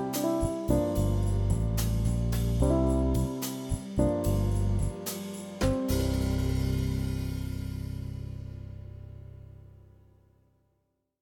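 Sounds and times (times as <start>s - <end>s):
slow swing jazz: 0.0s - 8.8s.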